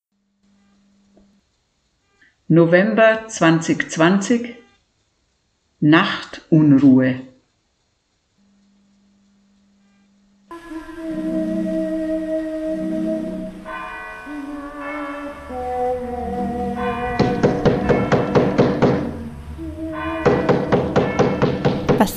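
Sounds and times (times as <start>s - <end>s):
speech: 2.5s - 4.6s, 5.8s - 7.3s
church tower bell striking midnight: 10.5s - 22.1s.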